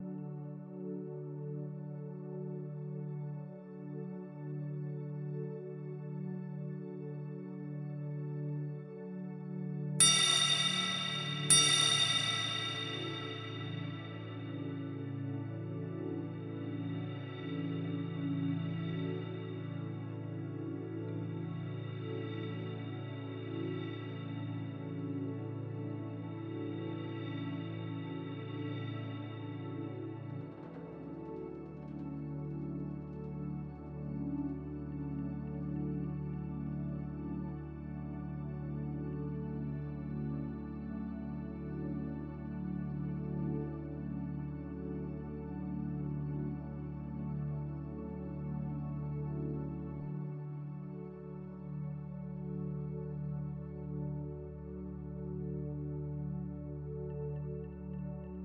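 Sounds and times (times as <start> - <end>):
relaxing reiki music: 0.0 - 58.4
timer bells: 10.0 - 14.4.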